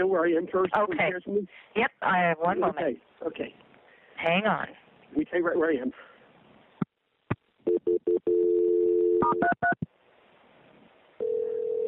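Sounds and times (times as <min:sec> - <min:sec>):
speech: 0:00.0 - 0:03.6, 0:04.2 - 0:06.1
steady telephone tone: 0:07.7 - 0:09.5, 0:11.2 - 0:11.8.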